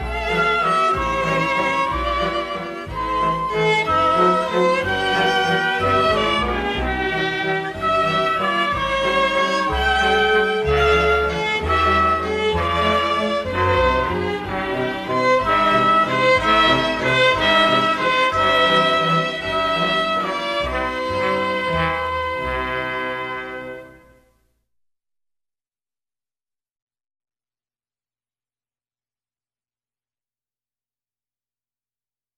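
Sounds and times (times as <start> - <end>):
waltz music: 0.0 - 24.4.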